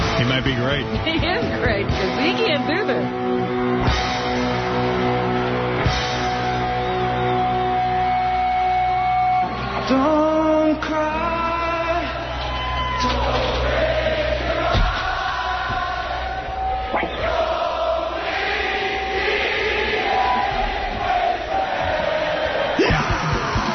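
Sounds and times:
speech: 0.2 - 4.8, 9.9 - 11.3
crowd shouts: 2.2 - 23.7
concert audience singing along: 9.6 - 23.7.

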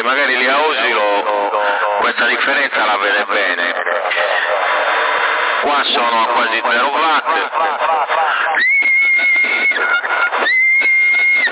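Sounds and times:
person talking over CB radio: 0.0 - 8.7
CB radio crackle: 0.0 - 11.5
speech: 0.1 - 0.8, 2.2 - 4.6, 5.6 - 8.7
laughter: 0.5 - 11.5
person in Sassari Italy whistling into a CB radio microphone: 8.3 - 11.5.

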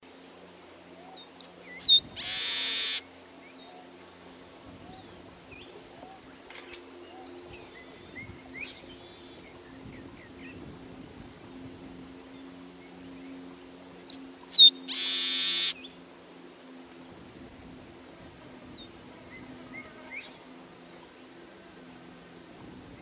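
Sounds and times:
bird giving sharp high downslurred whistles and short notes: 1.1 - 3.0, 14.1 - 15.8.

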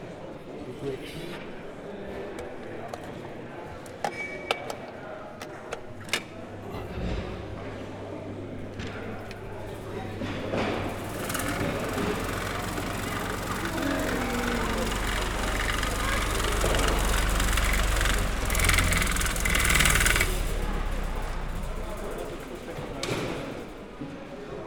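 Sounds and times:
speech: 0.8 - 1.5
electric fan being switched on: 6.2 - 24.4.

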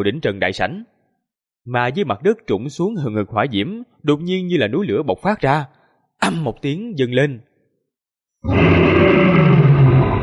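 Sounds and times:
speech: 0.0 - 0.9, 1.6 - 7.5
monstrous roar: 8.4 - 10.2.

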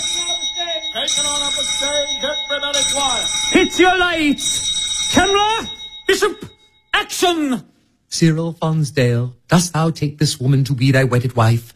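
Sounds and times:
bells rung as studio signal: 0.0 - 7.4
speech: 2.9 - 11.7.

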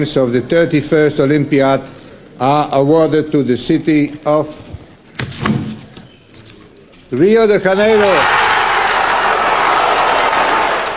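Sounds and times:
speech: 0.0 - 4.7, 7.1 - 8.4
Brazilian delegation in Copenhagen cheering and applauding: 8.0 - 10.9.

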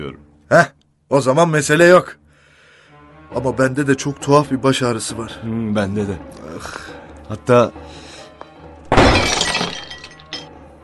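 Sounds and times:
speech: 0.0 - 2.2, 3.3 - 8.0
cup breaking: 8.9 - 10.6.

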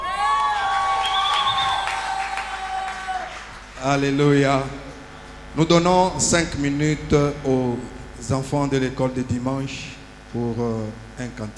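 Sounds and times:
children shouting cries of joy: 0.0 - 3.5
speech: 3.8 - 4.9, 5.6 - 11.5.

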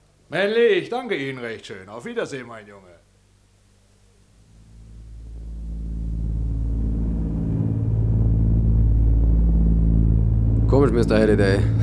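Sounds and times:
speech: 0.3 - 3.1, 10.8 - 11.8
airplane engines droning in flight: 4.5 - 11.8.

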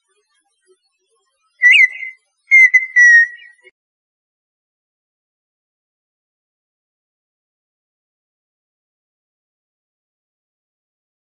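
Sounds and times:
partridge song of clicks and whistles: 1.6 - 3.7.

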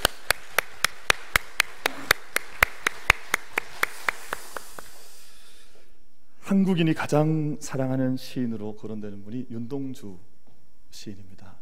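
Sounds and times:
audience applause: 0.0 - 5.0
speech: 6.5 - 10.3, 11.0 - 11.6.

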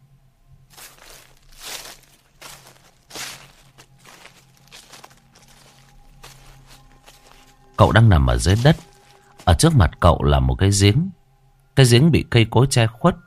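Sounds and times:
shoes walking through grass in a dark forest: 0.7 - 9.8
speech: 7.8 - 8.8, 9.6 - 11.2, 11.8 - 13.2.

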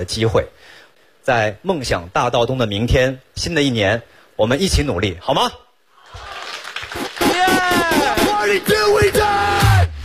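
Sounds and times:
speech: 0.0 - 6.2
audience clapping: 6.0 - 8.7
audience cheering: 6.0 - 10.0
rising whoops and shouted yells: 7.2 - 9.9.

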